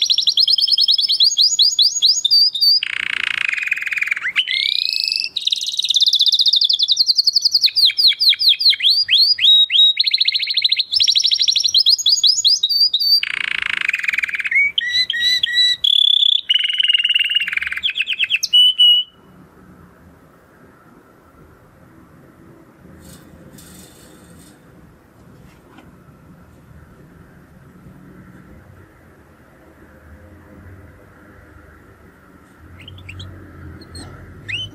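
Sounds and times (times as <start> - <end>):
canary singing: 0.0 - 19.4, 32.6 - 34.7.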